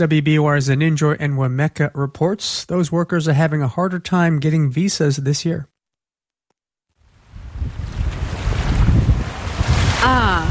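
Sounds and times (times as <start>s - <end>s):
speech: 0.0s - 5.7s, 10.0s - 10.4s
ocean surf washing ashore: 7.1s - 10.4s
steady coastal wind buffeting the microphone: 7.1s - 10.4s.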